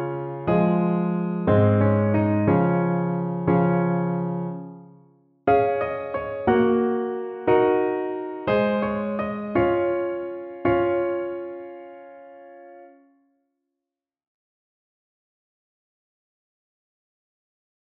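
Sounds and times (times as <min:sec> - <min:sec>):
piano in three voices in D-flat major: 0:00.0 - 0:13.2.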